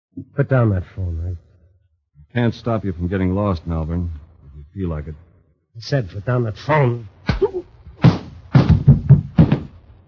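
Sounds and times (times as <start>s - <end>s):
speech: 0.2s - 1.5s, 2.3s - 4.2s, 4.8s - 7.7s
slap to the face: 7.3s - 9.8s.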